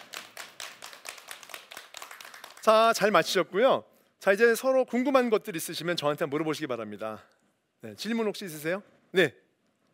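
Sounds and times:
audience applause: 0:00.0 - 0:02.7
speech: 0:02.6 - 0:09.4.

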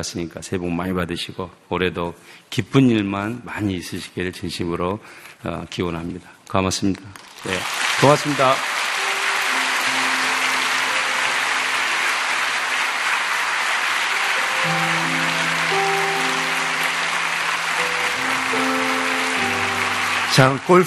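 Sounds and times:
speech: 0:00.0 - 0:08.9, 0:20.4 - 0:20.8
crowd applause: 0:07.2 - 0:20.8
soft musical tones: 0:08.0 - 0:20.8.

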